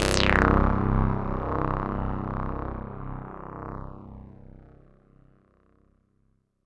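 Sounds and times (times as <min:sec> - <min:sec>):
synth note in F minor: 0:00.0 - 0:03.7.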